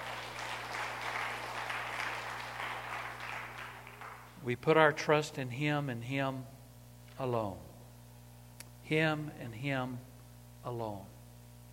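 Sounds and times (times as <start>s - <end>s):
crowd clapping: 0.0s - 4.4s
low steady hum: 0.0s - 11.7s
speech: 4.4s - 6.6s, 7.2s - 7.7s, 8.9s - 11.1s.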